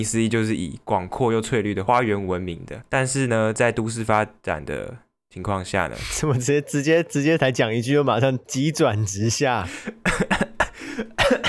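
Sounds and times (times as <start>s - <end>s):
speech: 0.0s - 10.4s
harsh raspy coughing: 6.0s - 6.4s, 9.6s - 11.4s.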